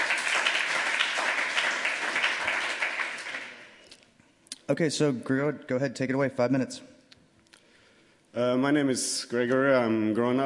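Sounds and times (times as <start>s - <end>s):
audience applause: 0.0s - 3.8s
speech: 4.7s - 6.9s, 8.4s - 10.4s.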